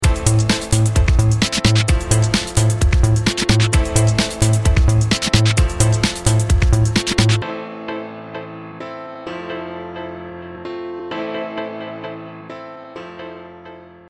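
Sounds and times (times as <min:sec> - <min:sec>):
guitar with beat: 0:00.0 - 0:07.4.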